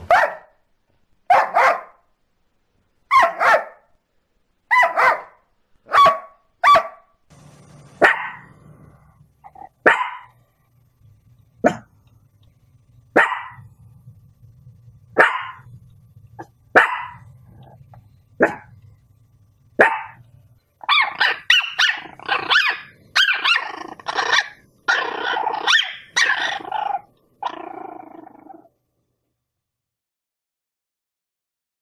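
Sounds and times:
dog barking: 0.0s - 0.6s, 1.3s - 2.0s, 3.1s - 3.9s, 4.7s - 7.1s, 8.0s - 8.5s, 9.5s - 10.4s, 11.6s - 11.9s, 13.2s - 13.7s, 15.2s - 15.7s, 16.4s - 17.3s, 18.4s - 18.8s, 19.8s - 20.2s, 20.8s - 26.7s
low steady hum: 7.3s - 29.4s.

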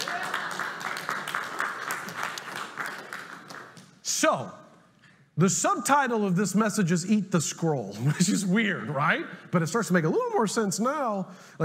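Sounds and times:
audience cheering: 0.0s - 2.7s
audience clapping: 0.0s - 4.2s
speech: 4.2s - 4.6s, 5.4s - 11.6s.

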